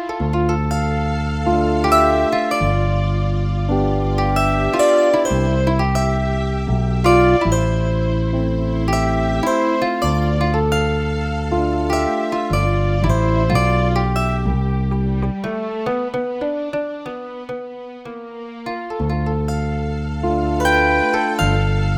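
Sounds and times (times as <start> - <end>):
zither: 0.2 - 16.0, 18.7 - 21.9.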